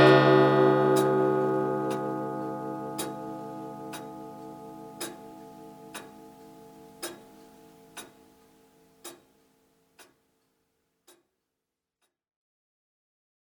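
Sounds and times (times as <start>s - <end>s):
Comtoise clock striking twelve: 0.0s - 9.4s.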